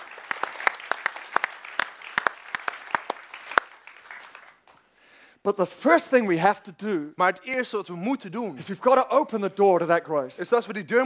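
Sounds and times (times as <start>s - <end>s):
audience applause: 0.0s - 4.7s
speech: 5.4s - 11.0s.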